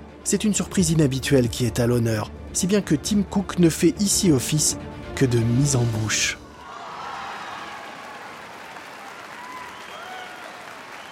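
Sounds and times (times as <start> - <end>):
speech: 0.2 - 6.4
audience applause and cheering: 6.4 - 11.1.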